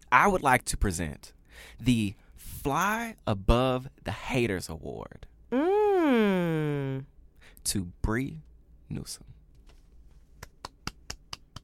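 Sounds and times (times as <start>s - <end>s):
speech: 0.1s - 9.3s
clapping: 10.4s - 11.6s.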